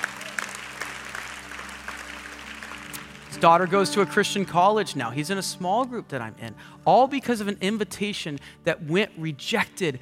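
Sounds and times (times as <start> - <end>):
audience clapping: 0.0 - 4.0
speech: 3.4 - 10.0.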